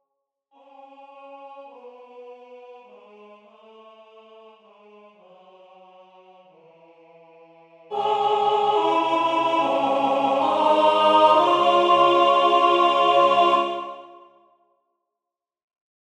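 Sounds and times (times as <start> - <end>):
tenor singing: 7.9 - 14.3.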